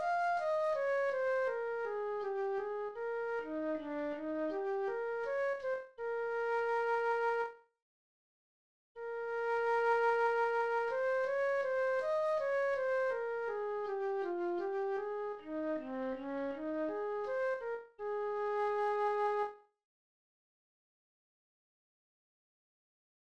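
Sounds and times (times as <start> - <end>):
flute: 0.0 - 7.7, 9.0 - 19.7.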